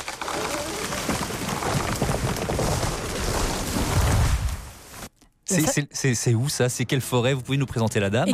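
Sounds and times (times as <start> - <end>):
wood fibre cracking as a tree falls in a forest: 0.0 - 4.8
speech: 5.5 - 8.3.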